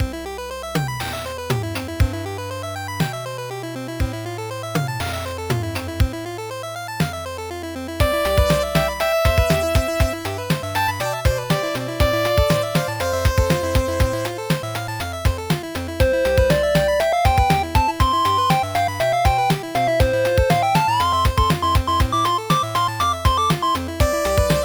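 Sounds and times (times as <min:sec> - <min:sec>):
8-bit music: 0:02.0 - 0:24.6.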